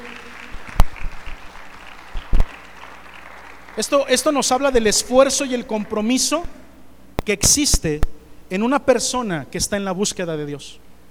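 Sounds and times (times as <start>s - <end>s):
light clapping: 0.0s - 3.9s
sharp loud claps from a gathered crowd: 0.0s - 6.4s
room noise: 0.0s - 11.0s
speech: 3.8s - 6.6s, 7.2s - 10.8s.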